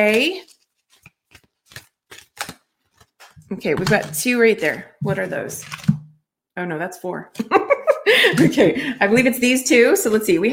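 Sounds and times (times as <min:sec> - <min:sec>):
speech: 0:00.0 - 0:00.5, 0:03.5 - 0:05.9, 0:06.6 - 0:10.5
Abraham Hicks well-being oracle cards being shuffled and drawn: 0:00.0 - 0:04.8.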